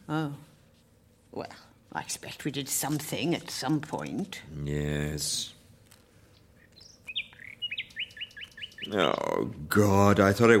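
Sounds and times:
speech: 0:00.1 - 0:00.5, 0:01.3 - 0:05.6, 0:08.9 - 0:10.5
sparrow chirping early in the morning: 0:06.5 - 0:09.4.

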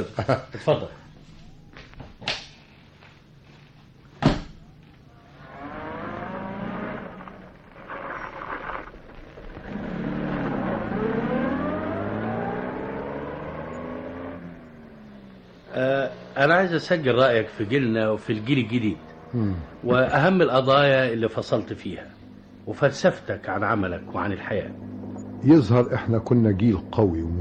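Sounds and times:
speech: 0:00.0 - 0:01.0, 0:16.6 - 0:27.4
door slams: 0:04.2 - 0:04.6
small car engine starting and pulling off through gear changes: 0:04.6 - 0:27.4.

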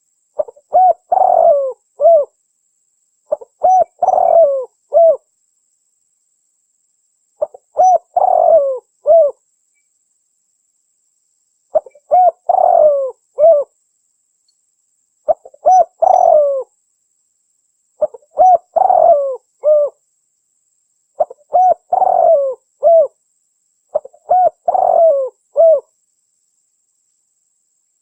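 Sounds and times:
spotted dove cooing: 0:00.4 - 0:02.4, 0:03.3 - 0:05.3, 0:07.4 - 0:09.4, 0:11.7 - 0:13.7, 0:15.3 - 0:16.7, 0:18.0 - 0:20.0, 0:21.2 - 0:23.2, 0:23.9 - 0:25.9.

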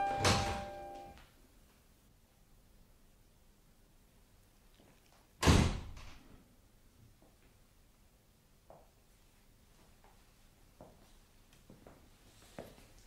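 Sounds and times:
door shutting with a loud sharp thud: 0:00.0 - 0:00.9, 0:05.4 - 0:06.2.

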